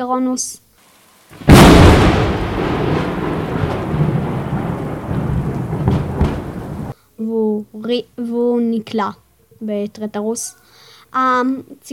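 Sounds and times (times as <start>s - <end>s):
speech: 0.0s - 0.6s, 7.2s - 11.9s
loud thunder crash sound effect: 1.4s - 7.0s.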